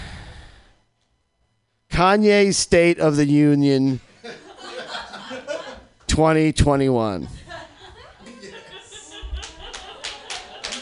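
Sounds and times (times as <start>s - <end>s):
speech: 2.0s - 4.1s, 6.2s - 7.4s
audience chuckling and laughter at a comedy club: 4.2s - 5.9s, 7.3s - 10.8s
audience clapping at a comedy club show: 9.3s - 10.8s.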